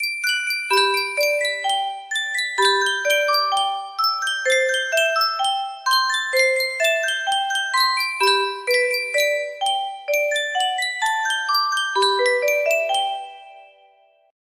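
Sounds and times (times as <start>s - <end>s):
Yunsheng custom tune music box: 0.0s - 14.2s.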